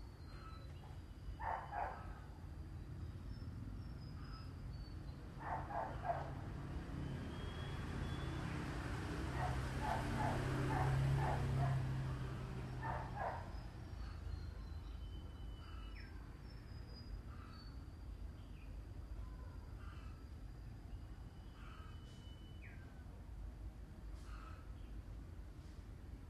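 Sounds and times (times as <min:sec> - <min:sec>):
heavy low engine-like rumble: 0:00.0 - 0:26.2
domestic dog barking: 0:01.4 - 0:02.2, 0:05.4 - 0:06.4, 0:09.3 - 0:14.2.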